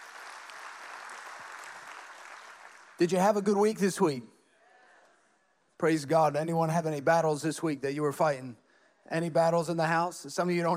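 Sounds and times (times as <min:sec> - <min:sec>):
audience clapping: 0:00.0 - 0:03.6
speech: 0:03.0 - 0:04.3, 0:05.8 - 0:10.7.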